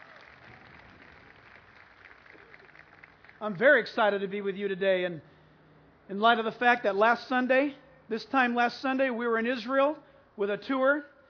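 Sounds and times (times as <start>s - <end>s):
crowd clapping: 0.0s - 3.6s
speech: 3.4s - 5.3s, 6.1s - 11.1s.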